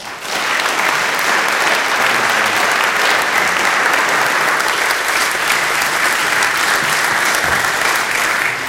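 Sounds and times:
crowd applauding to welcome a speaker: 0.0 - 8.6.

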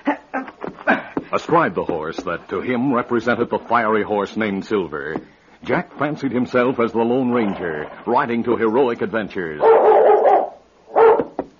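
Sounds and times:
speech: 1.3 - 9.9
dog barking: 9.6 - 11.4.

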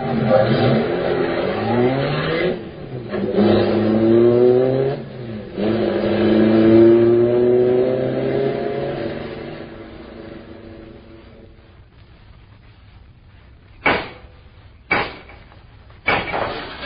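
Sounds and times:
car accelerating away: 0.0 - 11.7.

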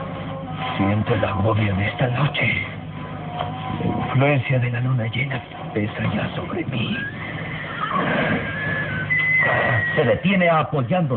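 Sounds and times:
speech: 0.7 - 2.8, 3.4 - 7.2, 7.9 - 8.6, 9.4 - 11.1
rumbling background: 1.0 - 9.8
horses neighing nervously: 6.9 - 10.2.

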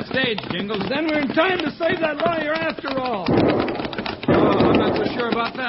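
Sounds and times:
speech: 0.2 - 3.8, 5.0 - 5.6
gunshots: 3.3 - 5.4.

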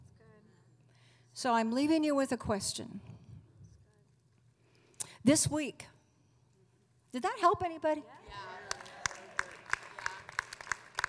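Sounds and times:
speech: 1.4 - 3.1, 5.2 - 5.9, 7.1 - 8.5
sparse audience clapping: 8.3 - 11.0.

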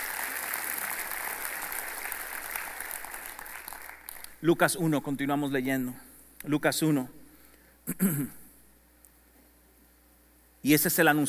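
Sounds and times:
audience applause: 0.0 - 4.5
speech: 4.4 - 7.2, 7.9 - 8.4, 10.6 - 11.2.

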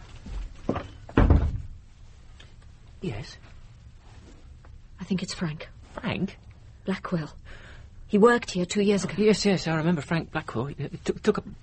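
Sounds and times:
door being shut: 1.1 - 1.7
speech: 3.0 - 3.6, 5.1 - 11.6.

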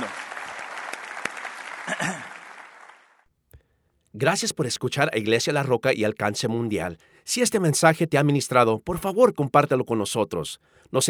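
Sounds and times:
audience applause: 0.0 - 3.2
speech: 1.9 - 2.3, 4.2 - 11.0.

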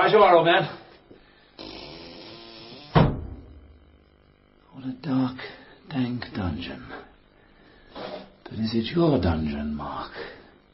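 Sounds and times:
speech: 0.1 - 0.8, 4.8 - 7.1, 8.0 - 10.4
door creaking: 1.6 - 3.6
door shutting with a heavy thud: 2.9 - 3.6.

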